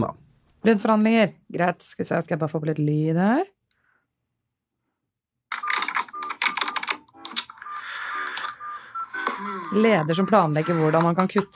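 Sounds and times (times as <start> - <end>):
speech: 0.0 - 3.6, 9.7 - 11.5
rapid typing on a computer keyboard: 5.5 - 9.4.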